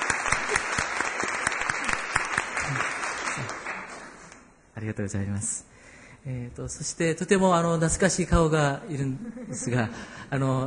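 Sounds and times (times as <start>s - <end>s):
audience applause: 0.0s - 4.3s
speech: 4.8s - 10.6s.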